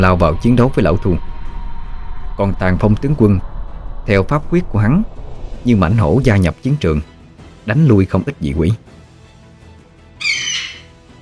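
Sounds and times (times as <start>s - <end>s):
speech: 0.0s - 1.3s, 2.4s - 7.1s, 7.7s - 8.9s
eagle screech: 10.2s - 11.0s.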